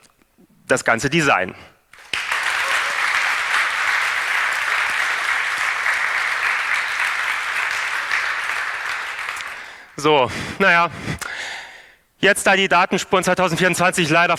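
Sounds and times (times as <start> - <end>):
speech: 0.7 - 1.7, 10.0 - 11.4, 12.2 - 14.3
audience applause: 1.9 - 10.0.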